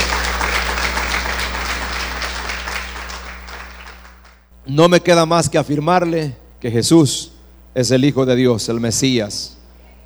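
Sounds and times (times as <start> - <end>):
audience clapping: 0.0 - 4.5
speech: 4.7 - 9.6.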